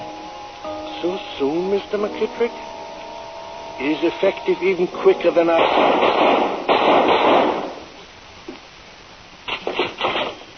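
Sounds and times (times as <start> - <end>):
speech: 1.0 - 2.8, 3.8 - 6.4
gunshot fired at a doctor: 5.6 - 7.8, 9.6 - 10.5.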